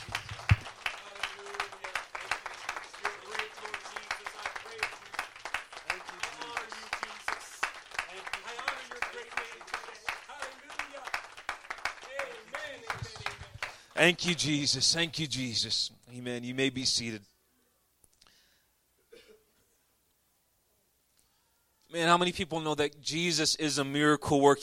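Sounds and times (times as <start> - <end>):
crowd clapping hands: 0.0 - 14.7
speech: 14.0 - 17.3, 22.0 - 24.6.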